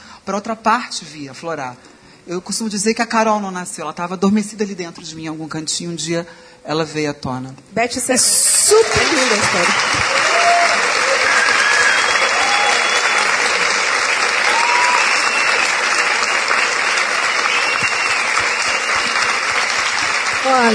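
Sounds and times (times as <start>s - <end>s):
speech: 0.3s - 10.5s, 20.5s - 20.7s
audience applause: 8.5s - 20.7s
faint whistles and cheers: 10.0s - 19.8s.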